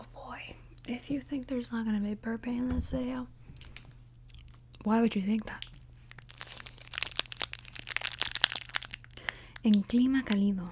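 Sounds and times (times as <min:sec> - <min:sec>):
faint steady hum: 0:00.0 - 0:10.6
speech: 0:00.9 - 0:03.4, 0:04.8 - 0:05.7, 0:09.6 - 0:10.6
crinkling plastic snack packaging being opened: 0:03.6 - 0:04.6, 0:05.4 - 0:10.6.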